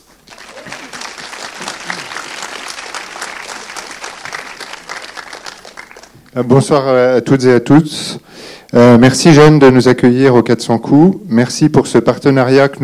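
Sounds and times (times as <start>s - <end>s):
audience applauding: 0.0s - 6.7s
speech: 6.4s - 12.8s.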